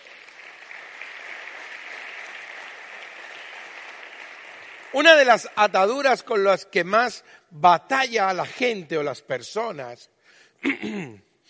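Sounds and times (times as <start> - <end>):
audience applause: 0.0 - 6.0
speech: 4.9 - 11.3.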